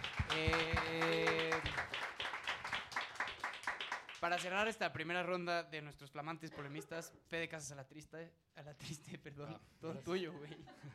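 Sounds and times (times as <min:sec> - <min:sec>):
audience applause: 0:00.0 - 0:04.4
speech: 0:04.2 - 0:10.9.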